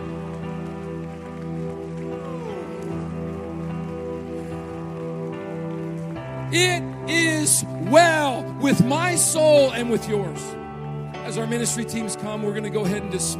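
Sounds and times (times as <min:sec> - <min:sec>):
audience clapping hands in praise: 0:00.0 - 0:07.1
speech: 0:06.5 - 0:10.6, 0:11.3 - 0:13.3.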